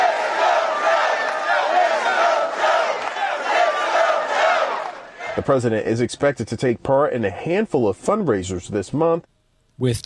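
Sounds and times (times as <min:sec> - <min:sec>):
large rally crowd chanting and cheering in unison: 0:00.0 - 0:05.5
speech: 0:05.4 - 0:10.0.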